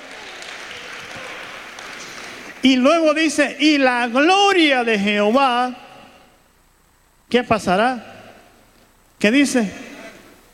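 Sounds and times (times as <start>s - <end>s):
audience applause: 0.0s - 2.6s
speech: 2.6s - 5.8s, 7.3s - 8.1s, 9.2s - 9.9s.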